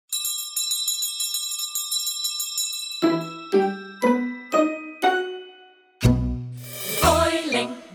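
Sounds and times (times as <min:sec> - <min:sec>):
jig tune: 0:03.0 - 0:07.8.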